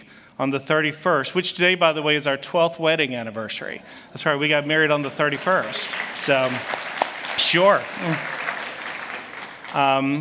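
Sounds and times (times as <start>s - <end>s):
speech: 0.4s - 6.8s, 7.5s - 8.4s, 9.7s - 10.2s
audience applause: 5.0s - 10.2s.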